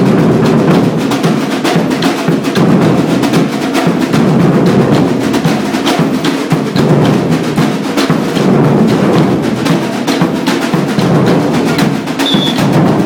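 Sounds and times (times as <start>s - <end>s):
swing drum break: 0.0s - 13.0s.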